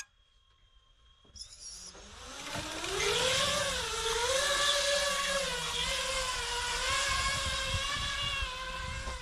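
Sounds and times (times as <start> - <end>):
brief tone: 0.0 - 2.0
drone motors whirring in flight: 1.1 - 9.2.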